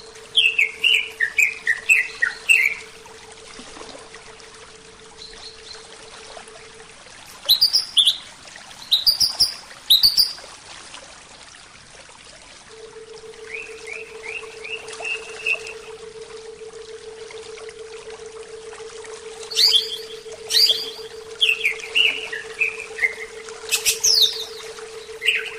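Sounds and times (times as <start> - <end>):
Oriental magpie-robin singing a soft rambling series of whistled notes: 0.4 - 2.8, 7.5 - 8.2, 8.9 - 10.4, 19.5 - 25.5.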